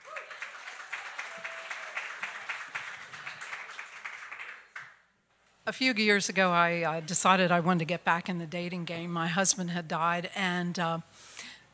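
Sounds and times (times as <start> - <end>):
audience applauding: 0.0 - 5.0
speech: 5.7 - 11.3.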